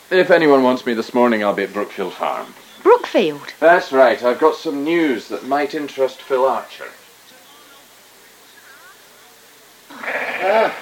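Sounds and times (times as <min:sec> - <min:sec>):
speech: 0:00.1 - 0:07.0
sheep bleating during lambing on a farm: 0:09.9 - 0:10.7.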